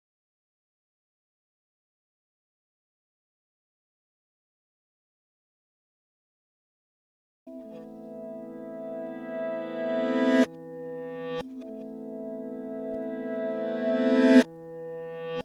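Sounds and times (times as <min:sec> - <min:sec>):
reversed dry lyre: 0:07.5 - 0:15.4.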